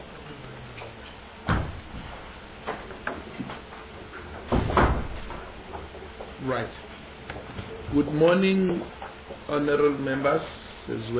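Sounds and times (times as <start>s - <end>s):
door being closed: 1.4s - 5.9s
speech: 6.4s - 6.9s, 7.9s - 11.1s.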